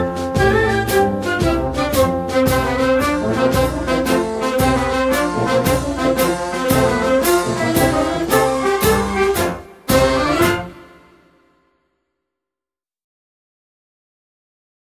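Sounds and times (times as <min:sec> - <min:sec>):
instrumental anthem: 0:00.0 - 0:11.6.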